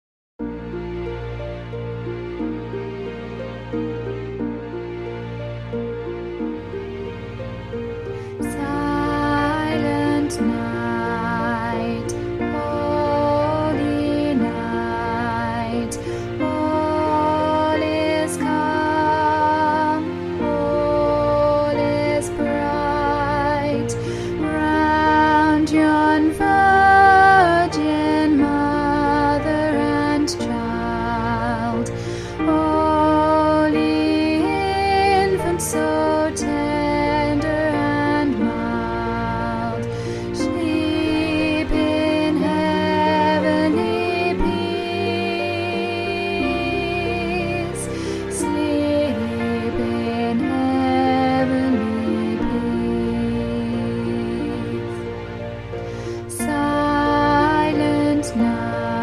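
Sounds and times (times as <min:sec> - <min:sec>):
choir altos singing the middle part: 0:00.6 - 0:59.0.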